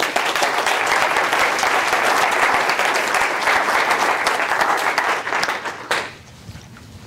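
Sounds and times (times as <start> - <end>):
audience applause welcoming a bank executive as the speaker: 0.0 - 6.2.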